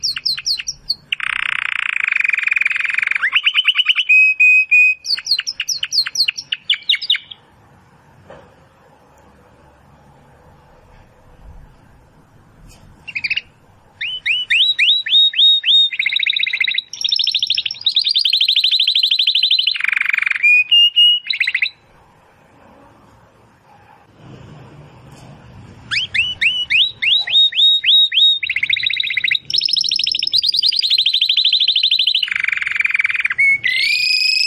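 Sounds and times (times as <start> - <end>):
domestic canary singing: 0.0 - 7.4, 13.0 - 21.9, 25.9 - 34.4.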